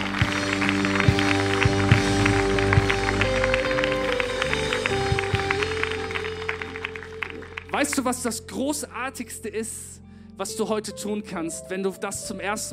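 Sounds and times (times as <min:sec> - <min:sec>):
audience applause: 0:00.0 - 0:08.2
speech: 0:07.8 - 0:12.7.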